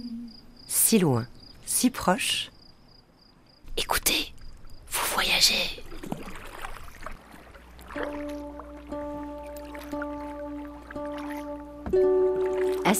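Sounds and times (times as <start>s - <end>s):
speech: 0.9s - 2.6s, 5.4s - 6.2s
canoe paddling on a lake: 4.4s - 12.9s.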